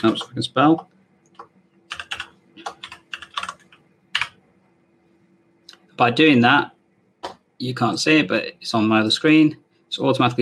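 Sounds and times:
speech: 0.0 - 0.9, 6.0 - 6.8, 7.6 - 10.4
typing on a computer keyboard in SystmOne clinical software: 0.0 - 4.4.

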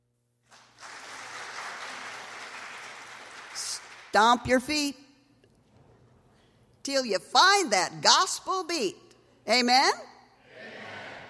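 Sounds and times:
people clapping: 0.4 - 4.2
speech: 4.1 - 5.0, 6.8 - 10.1.

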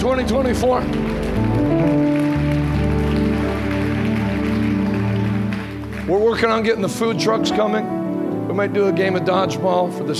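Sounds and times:
speech: 0.0 - 2.0, 6.1 - 10.1
audience hand clapping: 0.0 - 7.4.

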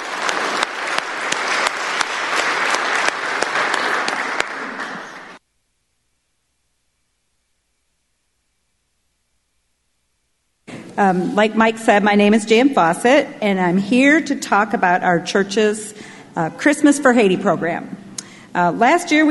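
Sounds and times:
audience applause welcoming a speaker at a church gathering: 0.0 - 5.4
speech: 11.0 - 18.0, 18.6 - 19.3.

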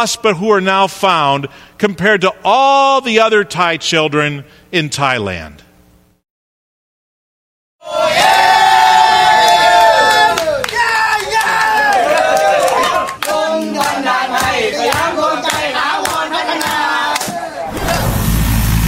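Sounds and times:
speech: 0.0 - 5.6
crowd cheering in the streets: 7.8 - 18.2.

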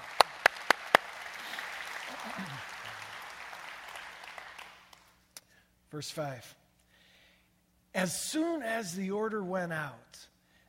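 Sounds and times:
audience clapping: 0.0 - 5.2
speech: 5.9 - 6.6, 7.9 - 10.3.

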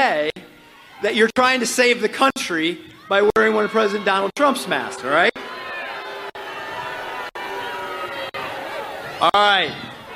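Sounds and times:
speech: 1.0 - 5.4, 9.2 - 9.8
crowd booing: 2.9 - 10.1.

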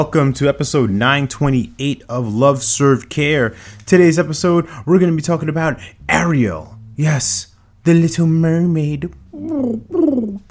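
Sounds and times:
speech: 0.0 - 10.5
voice imitating a fish swimming: 9.2 - 10.5.

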